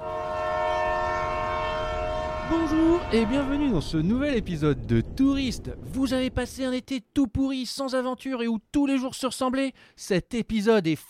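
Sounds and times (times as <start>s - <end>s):
train horn blast: 0.0s - 3.9s
speech: 2.5s - 11.0s.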